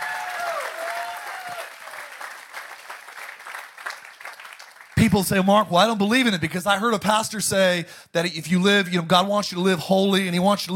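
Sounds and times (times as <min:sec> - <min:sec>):
audience hand clapping: 0:00.0 - 0:05.2
speech: 0:05.0 - 0:10.7.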